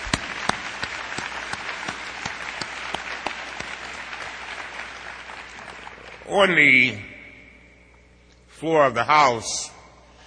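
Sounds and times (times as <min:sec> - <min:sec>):
audience applause: 0:00.0 - 0:06.4
speech: 0:06.3 - 0:07.1, 0:08.6 - 0:09.8.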